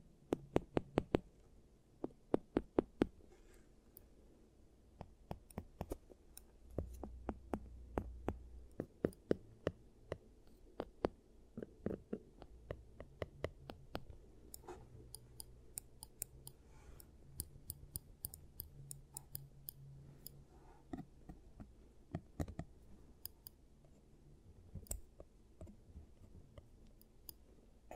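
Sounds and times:
sharp clicks and taps from giant teeth treatment: 0.3 - 1.3, 5.0 - 23.6, 24.7 - 25.8.

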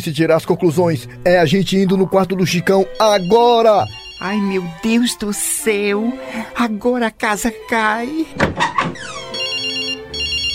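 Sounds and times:
speech: 0.0 - 9.2
mobile phone ringtone ringing inside a bedroom: 2.8 - 5.3, 9.0 - 10.5.

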